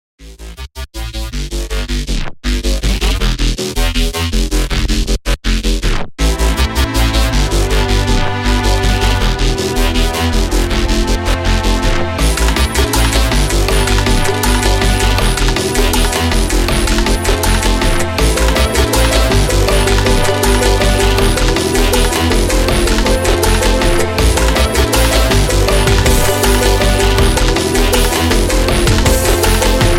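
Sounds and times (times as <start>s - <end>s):
future bass music: 0.2s - 29.9s.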